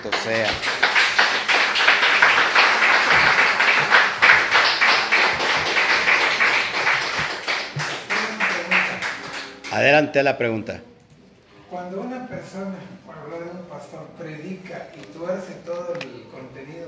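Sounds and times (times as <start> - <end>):
speech: 0.0 - 0.9, 9.7 - 10.9, 11.7 - 16.8
loud sustained applause from a crowd: 0.0 - 9.8.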